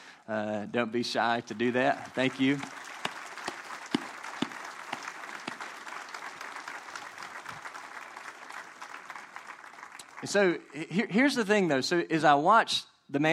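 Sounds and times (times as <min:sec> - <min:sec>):
speech: 0:00.3 - 0:02.9, 0:10.2 - 0:13.3
audience applauding: 0:01.3 - 0:10.8.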